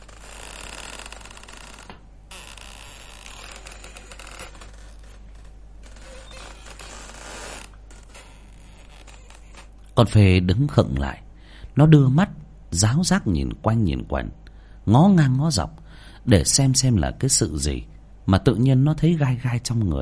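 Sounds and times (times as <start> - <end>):
hammock creaking as it swings: 0.0 - 9.8
speech: 10.0 - 11.2, 11.8 - 20.0.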